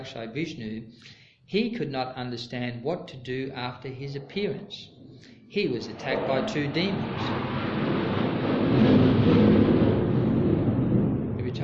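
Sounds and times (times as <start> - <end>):
speech: 0.0 - 7.6
airplane flying overhead: 5.8 - 11.6.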